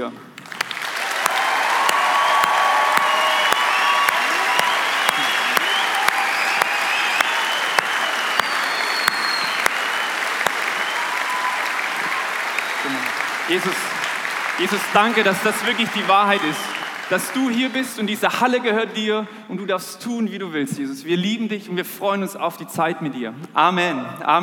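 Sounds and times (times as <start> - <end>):
audience applause in a hall: 0.4 - 18.6
speech: 13.6 - 13.9, 14.6 - 24.4.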